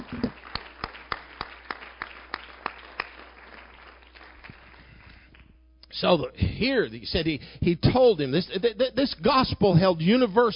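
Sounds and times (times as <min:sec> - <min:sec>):
audience clapping hands: 0:00.0 - 0:05.5
speech: 0:06.0 - 0:10.5.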